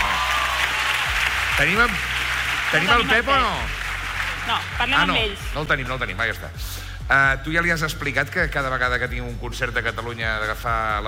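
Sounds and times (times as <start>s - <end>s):
audience applause: 0.0s - 5.6s
speech: 1.6s - 3.8s, 4.5s - 11.0s.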